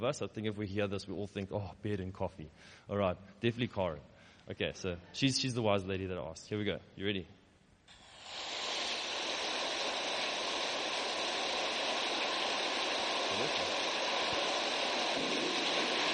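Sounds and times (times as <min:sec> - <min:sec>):
speech: 0:00.0 - 0:07.4
heavy rain: 0:08.3 - 0:16.1.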